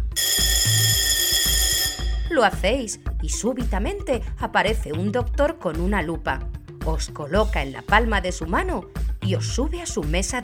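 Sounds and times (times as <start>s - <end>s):
doorbell ringing: 0.0s - 2.6s
speech: 2.4s - 10.4s.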